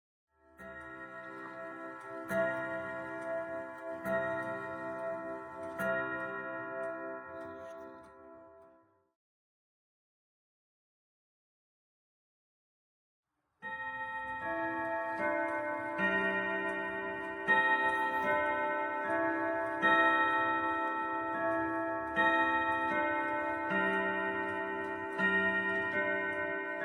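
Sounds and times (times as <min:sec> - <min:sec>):
carillon bells: 0:00.6 - 0:08.6, 0:13.6 - 0:26.8.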